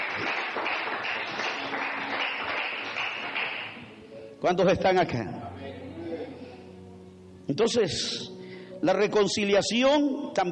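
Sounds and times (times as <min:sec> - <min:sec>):
audience applause: 0:00.0 - 0:03.8
speech: 0:04.4 - 0:05.5, 0:07.5 - 0:10.5.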